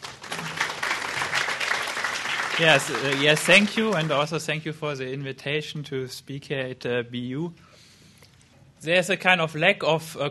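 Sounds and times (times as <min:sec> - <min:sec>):
audience applause at a university talk at BU: 0:00.0 - 0:04.4
speech: 0:02.6 - 0:07.7, 0:08.8 - 0:10.2.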